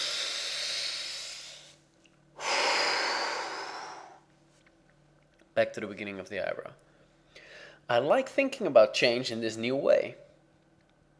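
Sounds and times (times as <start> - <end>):
deep breathing: 0.0 - 1.8, 2.4 - 4.3, 7.0 - 7.9
speech: 5.6 - 6.9, 7.9 - 10.2.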